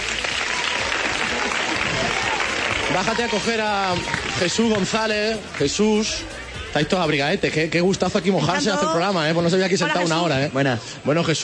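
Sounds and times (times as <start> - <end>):
studio audience applause on a Spanish television program: 0.0 - 6.2
speech: 3.0 - 11.4.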